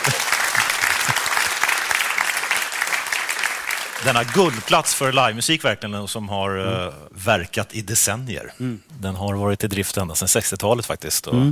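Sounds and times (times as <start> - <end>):
applause in the studio: 0.0 - 5.4
speech: 4.0 - 11.5.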